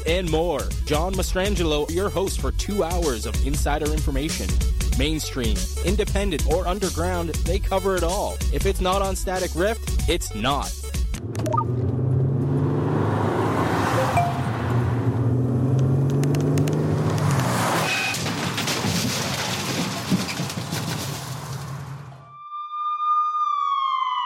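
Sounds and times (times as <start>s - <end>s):
speech: 0.1s - 11.6s
car engine and tire noise on the road: 10.9s - 22.2s
siren wailing: 22.2s - 24.2s.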